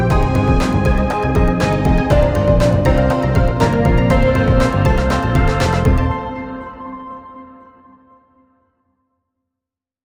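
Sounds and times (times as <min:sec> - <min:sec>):
urgent quest music: 0:00.0 - 0:08.2.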